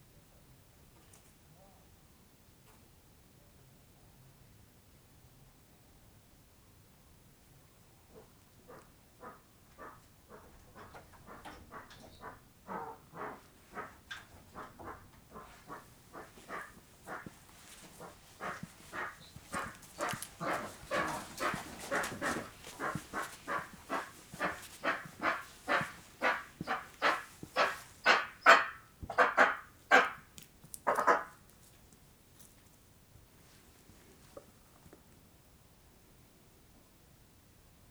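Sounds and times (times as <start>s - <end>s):
eastern imperial eagles in a cage: 8.1s - 34.8s.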